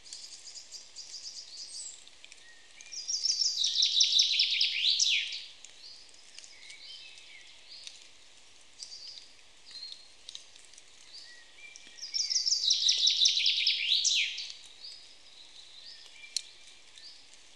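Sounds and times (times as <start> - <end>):
common chaffinch Fringilla coelebs singing: 0.2 - 8.0, 11.1 - 17.2.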